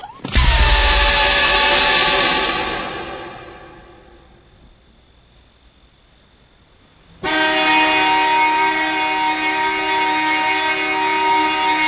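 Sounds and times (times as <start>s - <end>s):
horn blast: 0.3s - 4.5s, 7.2s - 11.8s.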